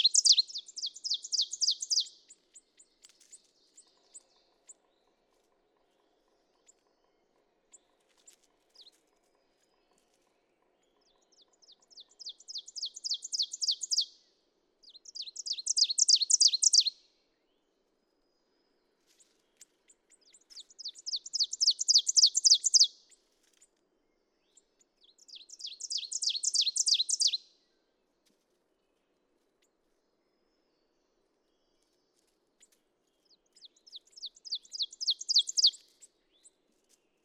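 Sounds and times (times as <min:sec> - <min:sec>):
ovenbird ringing song: 0:00.0 - 0:02.9, 0:10.9 - 0:14.1, 0:14.9 - 0:17.0, 0:20.1 - 0:23.0, 0:24.5 - 0:27.4, 0:33.5 - 0:35.9.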